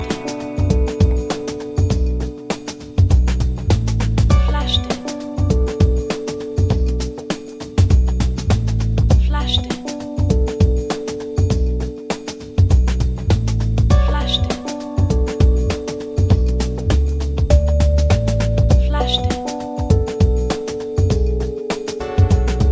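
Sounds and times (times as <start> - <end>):
jazz music: 0.0 - 22.7.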